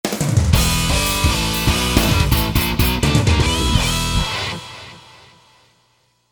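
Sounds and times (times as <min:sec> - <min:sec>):
goal fanfare: 0:01.0 - 0:04.6.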